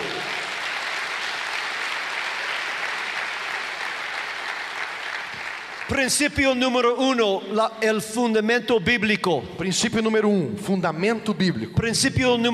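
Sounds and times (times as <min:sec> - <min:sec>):
audience applause: 0:00.0 - 0:06.2
speech: 0:05.9 - 0:12.5.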